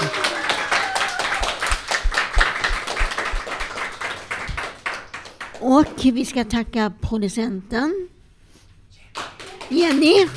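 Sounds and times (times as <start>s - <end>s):
audience clapping: 0.0s - 5.9s, 9.1s - 10.3s
speech: 5.6s - 8.1s, 9.7s - 10.3s.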